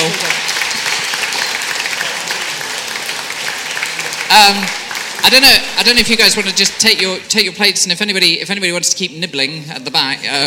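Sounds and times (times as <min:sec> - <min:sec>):
audience clapping: 0:00.0 - 0:07.7
speech: 0:04.3 - 0:10.4.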